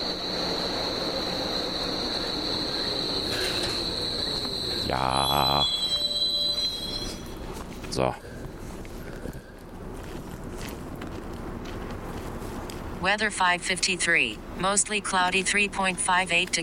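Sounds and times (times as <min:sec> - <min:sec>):
DT5 subway train wheels squealing: 0:00.0 - 0:08.4
rumbling rail noise: 0:00.0 - 0:13.6
speech: 0:04.9 - 0:05.8, 0:08.0 - 0:08.3, 0:13.0 - 0:16.6.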